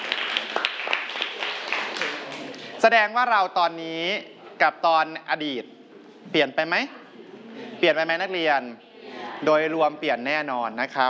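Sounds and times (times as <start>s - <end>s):
students clapping for two classmates: 0.0s - 2.8s
crowd noise: 0.0s - 11.0s
speech: 2.8s - 7.0s, 7.8s - 11.0s.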